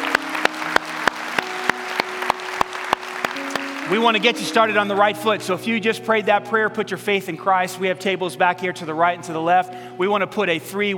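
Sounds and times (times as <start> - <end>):
audience applauding: 0.0 - 5.0
speech: 3.9 - 10.9.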